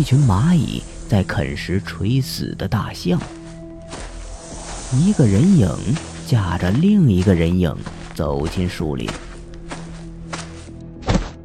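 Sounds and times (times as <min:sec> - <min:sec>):
speech: 0:00.0 - 0:03.4, 0:04.9 - 0:09.2
soft rustling impacts: 0:03.1 - 0:11.4
body hitting the ground: 0:09.1 - 0:11.4.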